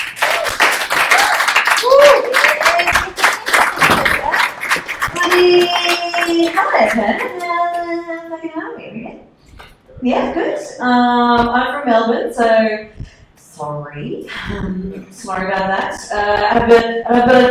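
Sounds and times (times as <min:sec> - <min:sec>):
audience applause welcoming a comedian at a festival show: 0:00.0 - 0:07.6
speech: 0:10.0 - 0:12.9, 0:13.6 - 0:17.5.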